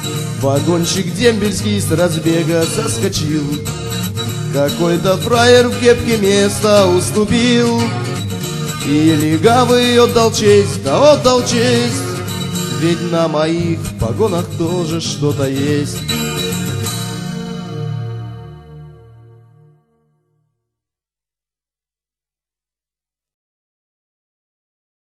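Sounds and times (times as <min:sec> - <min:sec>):
guitar chord: 0:00.0 - 0:19.7.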